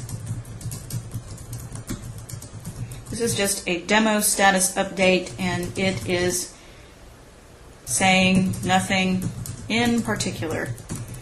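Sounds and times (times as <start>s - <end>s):
typing a status update on a computer keyboard: 0.0s - 3.5s, 5.2s - 6.4s, 8.2s - 11.2s
speech: 3.1s - 6.6s, 7.9s - 10.8s.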